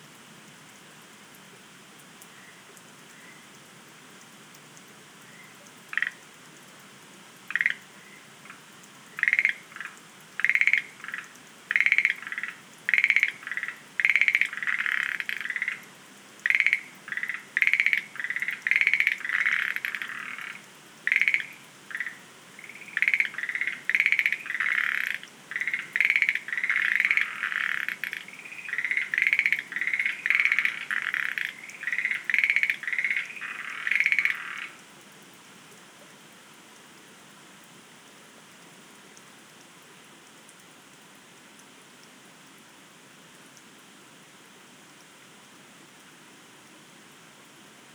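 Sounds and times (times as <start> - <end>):
Schlegel's green tree frogs rattling croaks: 5.3 - 6.4, 7.4 - 34.9.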